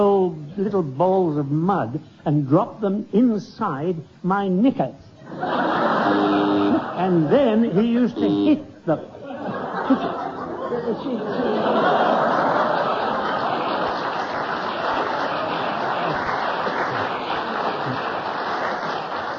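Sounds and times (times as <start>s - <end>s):
speech: 0.0s - 9.2s, 9.9s - 10.2s, 10.8s - 12.3s
laughter: 5.2s - 19.2s
studio audience applause: 12.4s - 19.3s.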